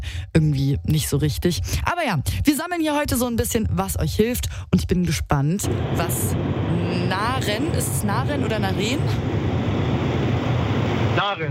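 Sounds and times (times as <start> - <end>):
speech: 0.2 - 9.4, 11.2 - 11.4
road and wind noise from car on the Autobahn: 5.6 - 11.3.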